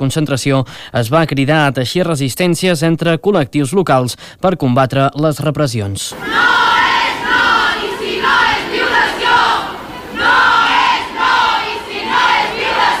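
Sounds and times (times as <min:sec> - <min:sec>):
speech: 0:00.0 - 0:06.7
crowd chanting feminist slogans at a Women's Day protest in Olot: 0:06.1 - 0:12.9.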